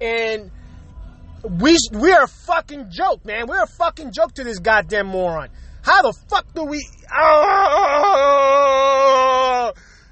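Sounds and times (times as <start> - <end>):
speech: 0.0 - 0.6, 1.4 - 8.6
person screaming in frustration: 7.1 - 9.8.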